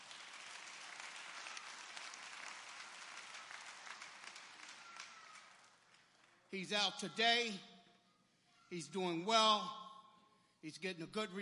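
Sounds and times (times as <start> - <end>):
audience clapping: 0.0 - 6.5
speech: 6.5 - 7.7, 8.7 - 9.8, 10.6 - 11.4.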